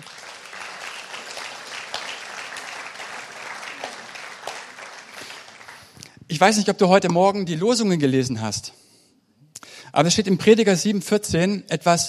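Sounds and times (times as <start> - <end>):
warm applause: 0.0 - 6.0
speech: 6.4 - 8.8, 10.0 - 12.0.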